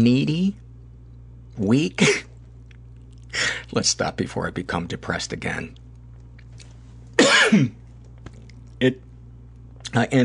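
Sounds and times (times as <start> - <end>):
speech: 0.0 - 0.6, 1.6 - 2.3, 3.4 - 5.8, 7.5 - 7.8, 8.8 - 9.0, 9.9 - 10.2
low hum: 0.0 - 10.2
person coughing after choking on saliva: 2.0 - 2.3, 7.2 - 7.8.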